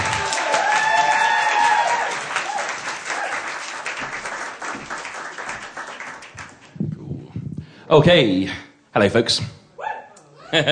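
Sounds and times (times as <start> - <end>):
audience applause: 0.0 - 6.8
speech: 7.9 - 9.6, 10.5 - 10.7.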